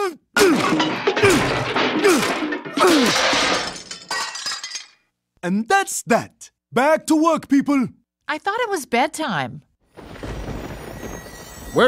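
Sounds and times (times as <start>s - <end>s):
hammer smashing a PCD: 0.4s - 4.7s
speech: 5.5s - 9.7s.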